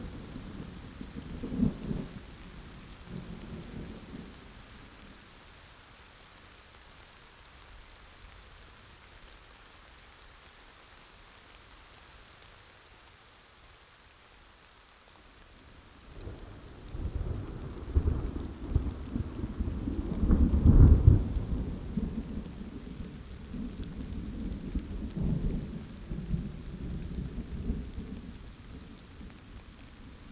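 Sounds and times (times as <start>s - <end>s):
rain: 0.0s - 30.2s
thunder: 17.1s - 22.6s.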